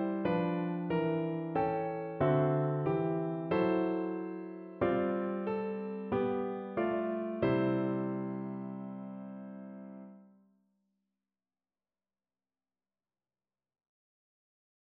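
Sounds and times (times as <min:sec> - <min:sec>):
lullaby played on piano: 0:00.0 - 0:10.4.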